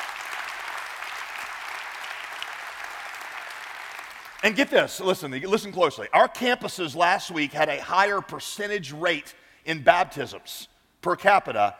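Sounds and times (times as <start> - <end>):
audience applause: 0.0 - 4.5
speech: 4.4 - 11.7.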